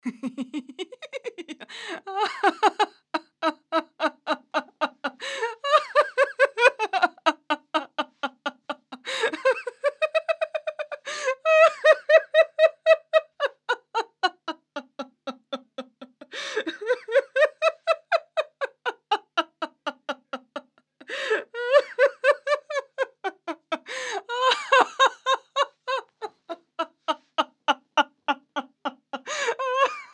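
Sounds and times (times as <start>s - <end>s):
person laughing: 0.0s - 30.1s.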